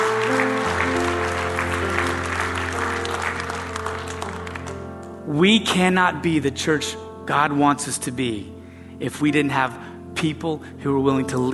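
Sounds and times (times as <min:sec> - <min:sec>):
audience clapping: 0:00.0 - 0:05.0
sustained low keyboard chords: 0:00.0 - 0:11.5
speech: 0:05.3 - 0:11.5.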